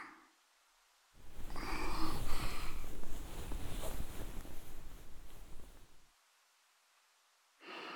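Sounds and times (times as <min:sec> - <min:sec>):
fellatio sounds on the lawn: 0:01.2 - 0:06.0.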